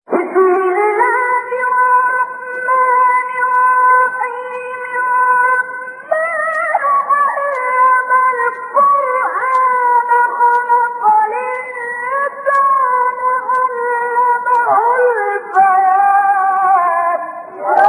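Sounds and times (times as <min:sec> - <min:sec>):
recitation of a sura passage: 0:00.1 - 0:17.8.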